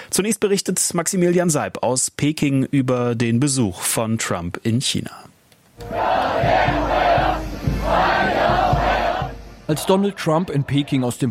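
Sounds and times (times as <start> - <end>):
speech: 0.1 - 7.2, 9.7 - 11.2
large crowd shouting and cheering in unison: 5.8 - 11.2.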